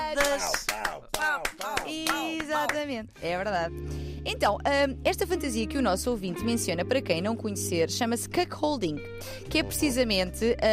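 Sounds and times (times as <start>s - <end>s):
scattered irregular hand claps: 0.1s - 2.9s
speech: 2.8s - 10.7s.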